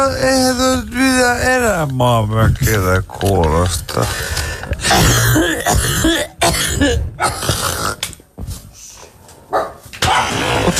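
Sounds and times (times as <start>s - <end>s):
speech: 0.0s - 7.7s
person coughing with spelt from porridge stuck in the throat: 4.8s - 8.0s, 10.0s - 10.7s.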